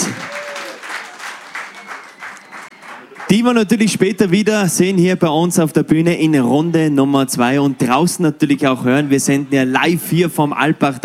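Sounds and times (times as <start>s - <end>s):
audience applause: 0.0s - 3.4s
speech: 3.3s - 11.0s.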